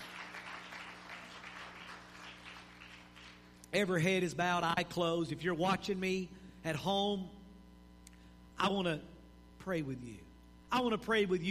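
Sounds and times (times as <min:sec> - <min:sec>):
audience clapping hands: 0:00.0 - 0:03.7
speech: 0:03.7 - 0:07.4, 0:08.6 - 0:11.4.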